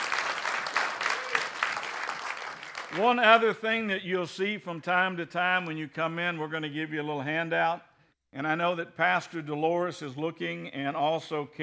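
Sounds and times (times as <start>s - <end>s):
audience applauding with loud hand claps: 0.0s - 3.4s
speech: 2.9s - 11.6s.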